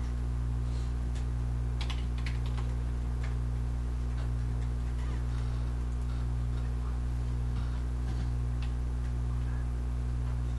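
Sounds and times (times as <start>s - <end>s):
steady low hum: 0.0s - 10.5s
typing on a computer keyboard while changing a password: 1.8s - 3.4s.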